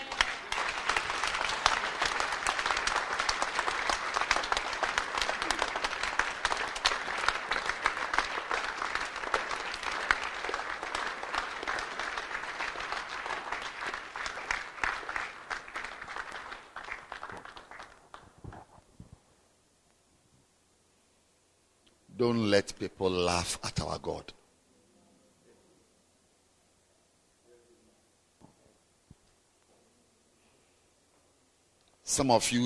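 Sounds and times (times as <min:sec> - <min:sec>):
audience applause: 0:00.0 - 0:18.7
speech: 0:22.2 - 0:24.4, 0:32.2 - 0:32.6.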